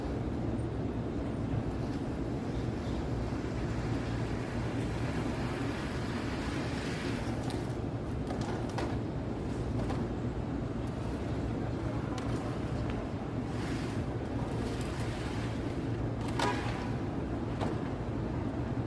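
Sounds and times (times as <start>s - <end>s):
traffic roar in Midtown New York City at night: 0.0s - 18.8s.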